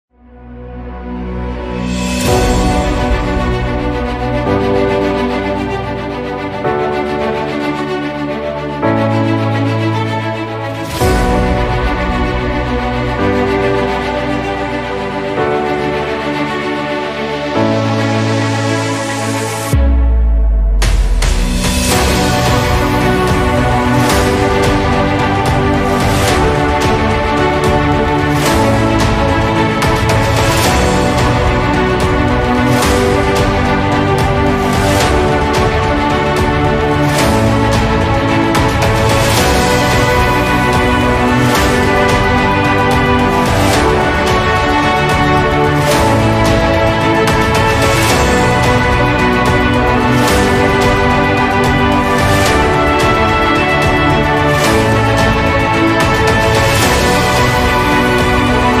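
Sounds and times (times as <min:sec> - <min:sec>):
saz: 0:00.4 - 0:58.7.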